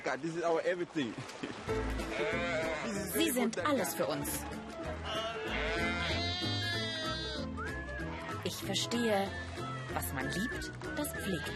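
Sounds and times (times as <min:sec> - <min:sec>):
speech: 0:00.1 - 0:06.1, 0:08.4 - 0:11.5
sheep flock bleating: 0:02.0 - 0:03.4, 0:05.0 - 0:07.5.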